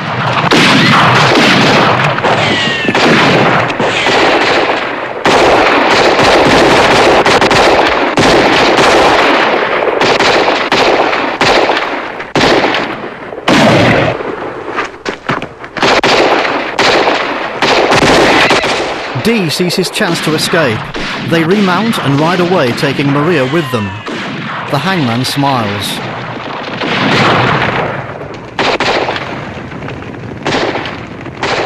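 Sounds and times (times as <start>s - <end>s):
heavy gunfire from a posse returning fire in a Western: 0.0s - 14.8s, 15.7s - 31.6s
speech: 19.3s - 24.0s, 24.7s - 26.1s.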